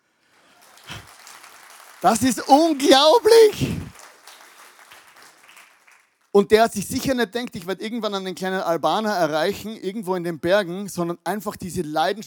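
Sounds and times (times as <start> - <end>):
audience applause: 0.2 - 6.3
speech: 2.0 - 3.8, 6.4 - 12.2.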